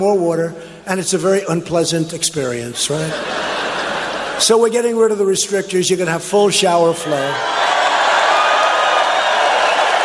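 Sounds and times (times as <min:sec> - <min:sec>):
speech: 0:00.0 - 0:03.6, 0:04.4 - 0:07.7
laughter: 0:02.8 - 0:04.7
crowd cheering at a presidential rally: 0:03.1 - 0:04.4, 0:06.8 - 0:10.0.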